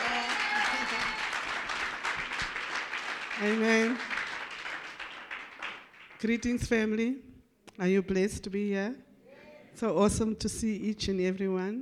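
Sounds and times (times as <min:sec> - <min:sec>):
audience applauding: 0:00.0 - 0:06.2
speech: 0:03.4 - 0:04.1, 0:06.2 - 0:09.1, 0:09.8 - 0:11.8.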